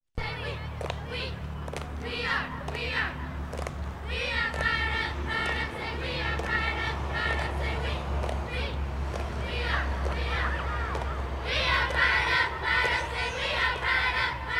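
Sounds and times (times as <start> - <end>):
singing vocals: 0.2 - 3.3, 4.0 - 14.5.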